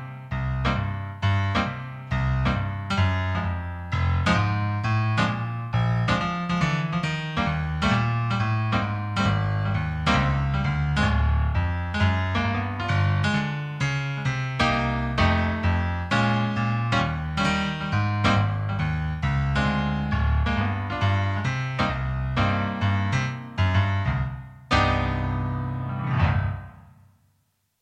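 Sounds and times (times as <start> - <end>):
instrumental jazz: 0.0 - 26.9.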